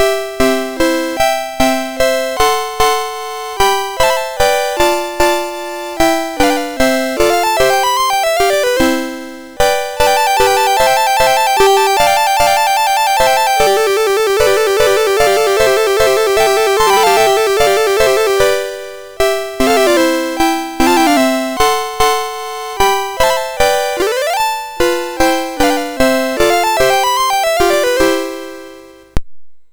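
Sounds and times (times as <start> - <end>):
MOS6581R3 chiptune minuet: 0.0 - 29.2.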